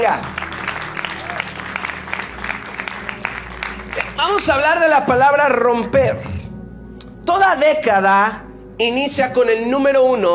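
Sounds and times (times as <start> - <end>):
speech: 0.0 - 0.4, 4.2 - 6.3, 7.3 - 10.3
audience applauding loudly: 0.0 - 4.8.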